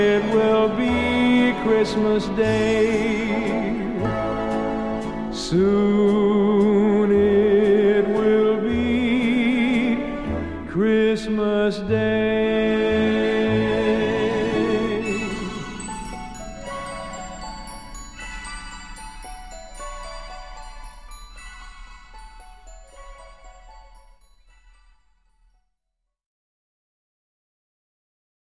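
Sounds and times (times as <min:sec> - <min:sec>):
male vocalist singing: 0:00.0 - 0:17.1
orchestra: 0:00.0 - 0:24.2.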